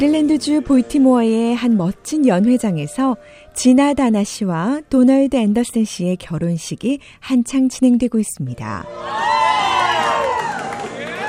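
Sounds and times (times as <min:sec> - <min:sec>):
speech: 0:00.0 - 0:09.4
wedding guests cheering: 0:08.8 - 0:11.2.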